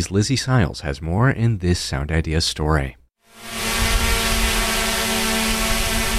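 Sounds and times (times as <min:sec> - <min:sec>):
speech: 0:00.0 - 0:03.5
drone rotors whirring overhead: 0:03.3 - 0:06.1.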